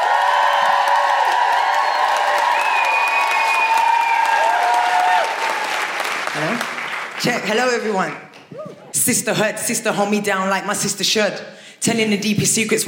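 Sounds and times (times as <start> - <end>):
high whooping and cheering voices: 0.0 - 5.8
loud sustained applause from a large audience: 0.0 - 8.0
speech: 7.2 - 8.3, 9.0 - 12.8.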